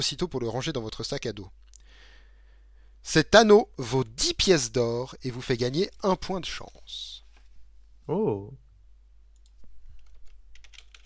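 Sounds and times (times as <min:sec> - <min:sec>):
speech: 0:00.0 - 0:01.7, 0:03.0 - 0:07.2, 0:08.1 - 0:08.6
typing onto a character sheet: 0:09.3 - 0:11.0.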